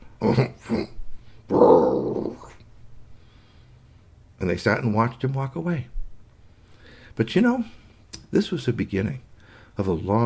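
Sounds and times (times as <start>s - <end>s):
voice imitating two bears growling: 0.0s - 2.6s
speech: 0.2s - 1.0s, 4.6s - 6.0s, 7.2s - 10.2s.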